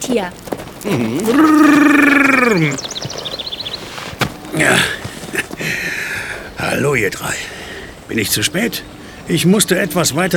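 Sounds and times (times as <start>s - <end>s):
horse approaching: 0.0s - 5.9s
speech: 0.1s - 3.0s, 4.5s - 5.0s, 6.7s - 7.5s, 8.1s - 10.3s
horse whinnying: 0.8s - 2.9s.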